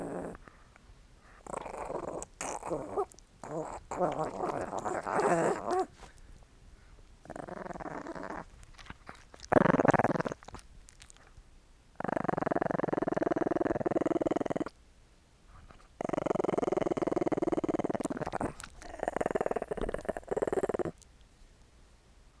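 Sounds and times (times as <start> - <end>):
small dog growling: 0.0 - 0.6, 1.2 - 6.2, 7.2 - 11.3, 12.0 - 14.8, 15.7 - 21.0
speech: 2.7 - 5.8.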